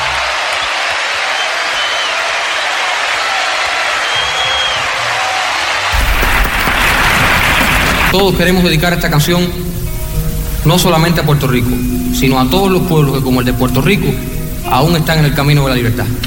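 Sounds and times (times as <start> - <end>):
crowd applauding: 0.0 - 8.2
speech: 8.1 - 9.7, 10.6 - 16.2.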